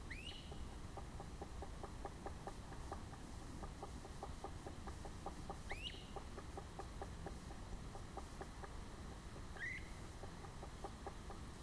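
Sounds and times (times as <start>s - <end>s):
red-bellied woodpecker calling: 0.1s - 11.5s.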